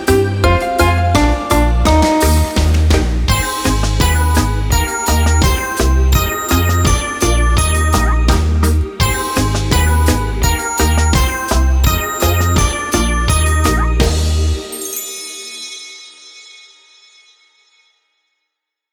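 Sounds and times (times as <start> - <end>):
karaoke singing: 0.0 - 14.7.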